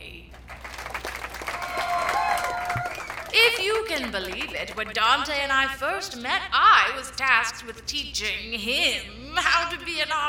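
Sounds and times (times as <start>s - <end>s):
audience applause: 0.4s - 5.0s
cheers and whoops: 1.0s - 3.4s
speech: 3.4s - 10.2s.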